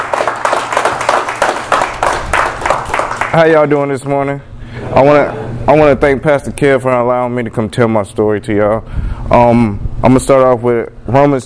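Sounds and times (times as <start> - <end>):
church congregation applauding during a morning service: 0.0 - 3.6
speech: 3.3 - 11.4.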